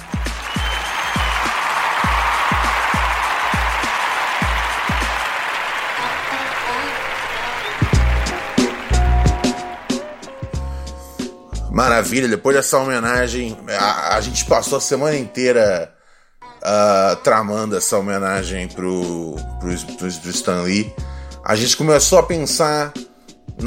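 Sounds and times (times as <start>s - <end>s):
round of applause: 0.0s - 10.7s
speech: 11.8s - 16.0s, 16.6s - 23.0s.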